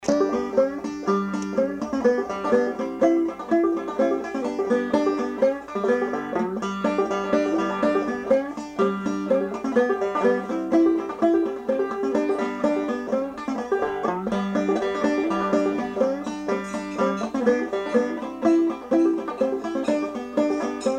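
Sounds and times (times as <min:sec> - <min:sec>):
banjo: 0:00.0 - 0:20.9.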